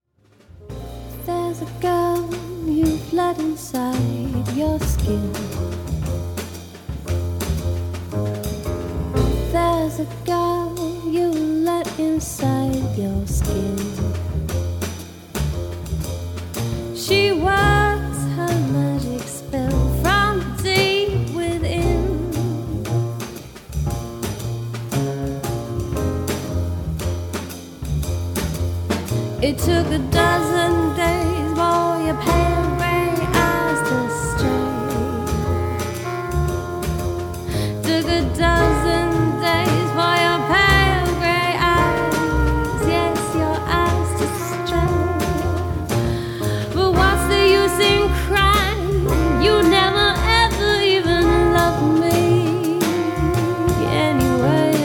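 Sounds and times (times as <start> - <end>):
blues music: 0.5 - 54.8.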